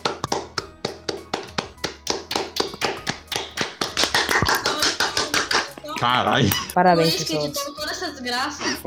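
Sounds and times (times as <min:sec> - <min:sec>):
small group clapping hands: 0:00.0 - 0:06.2
speech: 0:06.0 - 0:08.8.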